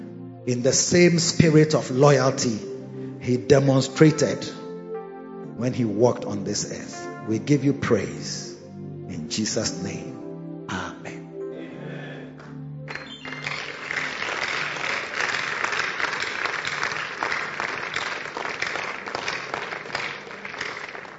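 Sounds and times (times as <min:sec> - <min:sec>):
speech: 0:00.4 - 0:04.6, 0:05.6 - 0:08.5, 0:09.3 - 0:10.9
crowd applause: 0:11.6 - 0:21.1.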